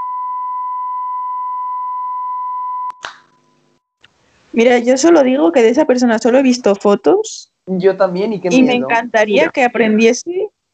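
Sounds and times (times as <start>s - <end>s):
electronic censor beep: 0.0s - 3.6s
speech: 4.6s - 10.5s.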